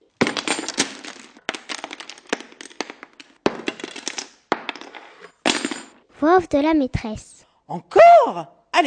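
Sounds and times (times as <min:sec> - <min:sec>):
pencil case contents falling onto floor: 0:00.0 - 0:06.0
speech: 0:06.2 - 0:08.8.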